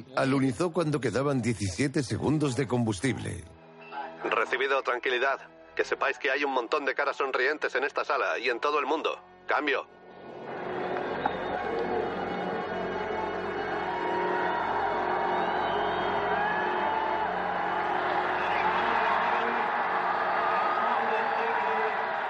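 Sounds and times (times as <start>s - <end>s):
speech: 0.1s - 3.6s, 4.5s - 10.0s
crowd cheering and applauding: 10.2s - 22.2s.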